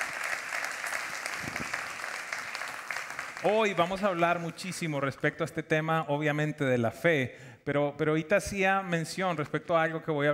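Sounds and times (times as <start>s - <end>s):
audience applauding: 0.0s - 4.6s
speech: 3.4s - 10.3s.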